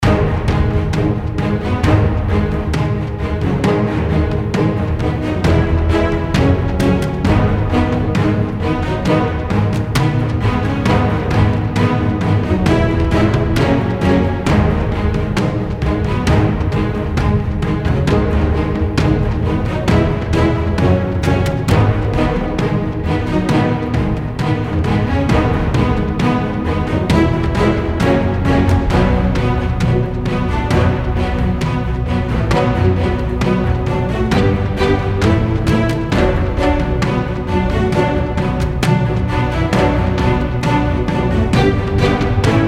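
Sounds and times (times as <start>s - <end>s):
battle music loop: 0.0s - 42.6s.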